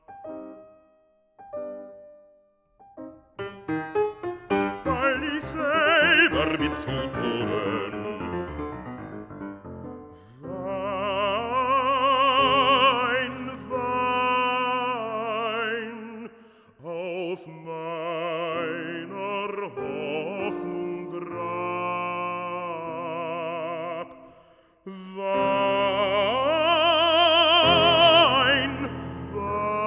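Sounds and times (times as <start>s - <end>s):
piano: 0.0s - 29.8s
person singing a song cycle: 4.6s - 8.5s, 10.2s - 24.2s, 24.9s - 29.8s.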